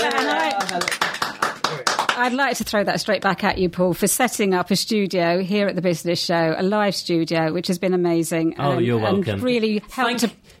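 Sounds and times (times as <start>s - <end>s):
applause: 0.0s - 2.6s
speech: 2.3s - 10.5s.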